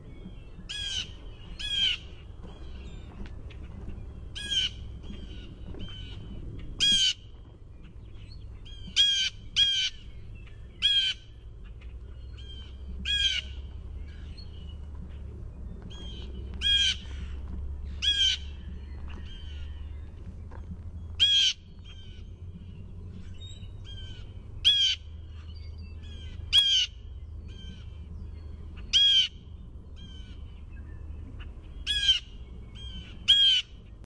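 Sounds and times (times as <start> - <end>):
low background rumble: 0.0 - 34.0
blue jay jeer calls: 0.7 - 3.0, 4.2 - 7.3, 7.9 - 15.2, 15.9 - 18.6, 21.2 - 22.4, 23.7 - 28.0, 28.8 - 29.4, 31.4 - 33.9.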